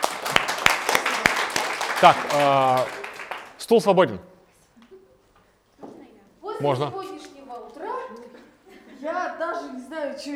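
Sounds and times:
audience applause: 0:00.0 - 0:04.2
laughter: 0:00.0 - 0:04.2, 0:06.6 - 0:07.0, 0:07.9 - 0:09.3
speech: 0:02.0 - 0:03.0, 0:03.7 - 0:04.3, 0:06.6 - 0:07.0, 0:09.0 - 0:10.3.

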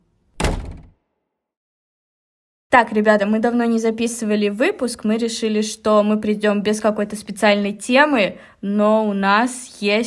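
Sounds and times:
wardrobe door being shut: 0:00.4 - 0:01.0
speech: 0:02.7 - 0:10.0.

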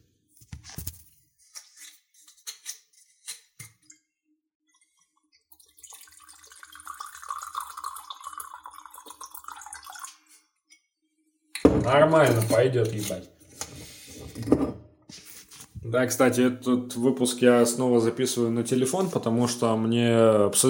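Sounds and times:
drink pouring: 0:04.7 - 0:10.3
bottle and glass clinking: 0:11.6 - 0:13.2
speech: 0:11.7 - 0:13.3, 0:15.9 - 0:20.6.

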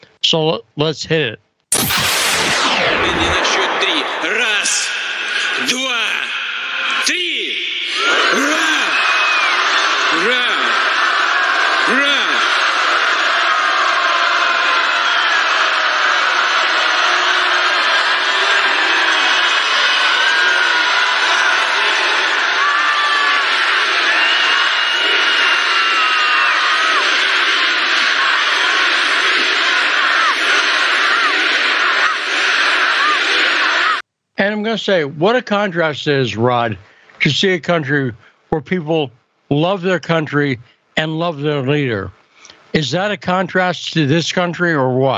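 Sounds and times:
speech: 0:00.3 - 0:02.1, 0:02.8 - 0:05.0, 0:05.6 - 0:06.2, 0:07.1 - 0:08.8, 0:10.2 - 0:10.6, 0:11.9 - 0:12.1, 0:34.6 - 0:45.1
enthusiastic rally crowd cheering: 0:01.7 - 0:34.0.

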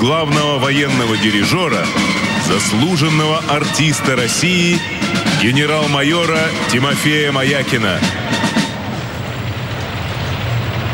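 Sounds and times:
speech: 0:00.0 - 0:08.4
heavy engines of military parade vehicles rumbling: 0:00.0 - 0:10.9.

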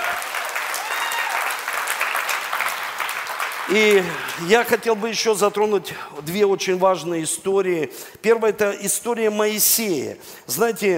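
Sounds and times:
audience applause: 0:00.0 - 0:04.8
speech: 0:03.7 - 0:10.9.

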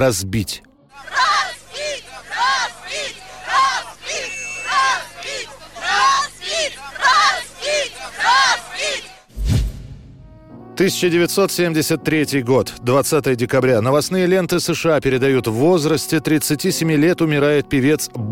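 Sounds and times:
speech: 0:00.0 - 0:01.1, 0:10.8 - 0:18.2
crowd shouting as statue is removed: 0:00.9 - 0:09.3.

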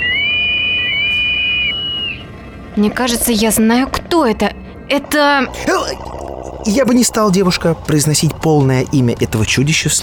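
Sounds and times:
deafening whistle shaking a train carriage: 0:00.0 - 0:02.8
speech: 0:02.8 - 0:10.0.

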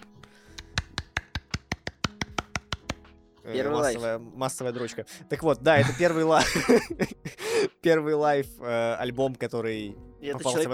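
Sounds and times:
hands clapping for a rock band: 0:00.0 - 0:03.1
speech: 0:03.4 - 0:10.7
laughter: 0:05.7 - 0:07.4.

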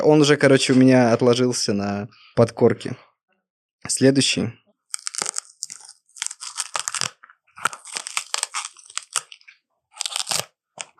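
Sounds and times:
speech: 0:00.0 - 0:03.1, 0:03.8 - 0:04.6
yogurt package being torn open: 0:04.9 - 0:10.9.

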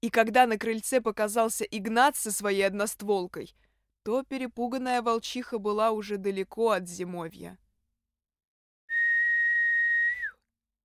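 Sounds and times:
speech: 0:00.0 - 0:07.6
man whistling: 0:08.9 - 0:10.5.

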